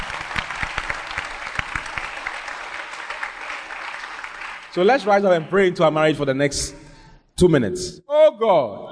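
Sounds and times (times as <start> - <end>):
group of people applauding: 0.0 - 5.2
speech: 4.7 - 6.8, 7.4 - 8.8.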